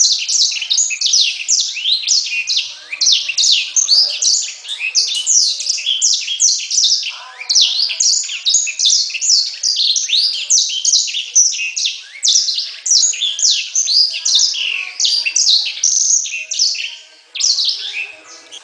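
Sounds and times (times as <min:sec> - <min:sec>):
bird song with rapid high-pitched chattering phrases and trills: 0:00.0 - 0:18.6.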